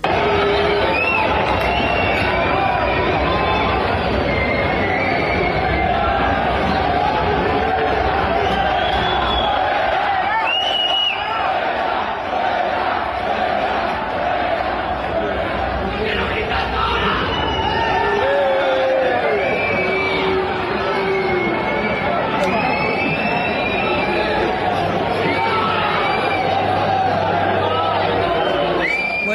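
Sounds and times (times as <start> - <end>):
tennis crowd shouting and jeering: 0.0 - 29.3
whistles: 0.4 - 6.2, 8.3 - 11.4, 17.2 - 18.2, 19.1 - 24.4, 25.2 - 26.6, 28.3 - 29.3.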